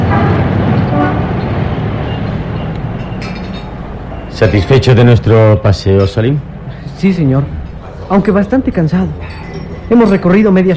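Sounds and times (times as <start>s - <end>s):
car horn tooting: 0.0s - 1.4s
busy street traffic rumble of passing vehicles: 0.0s - 10.7s
speech: 4.4s - 10.7s.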